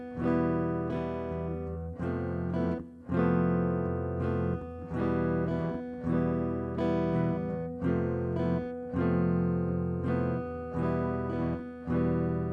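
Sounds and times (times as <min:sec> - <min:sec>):
Phrygian modal chord progression on guitar: 0:00.0 - 0:12.5.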